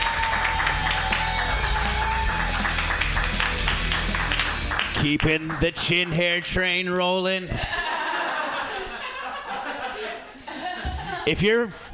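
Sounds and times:
audience applause: 0.0 - 6.4
speech: 5.0 - 7.9, 11.3 - 11.9
laughter: 7.5 - 11.4.

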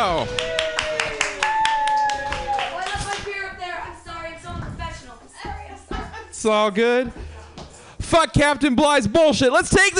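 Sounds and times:
comedy club audience clapping for a comedian: 0.1 - 3.4
speech: 6.5 - 7.3, 8.1 - 9.9.

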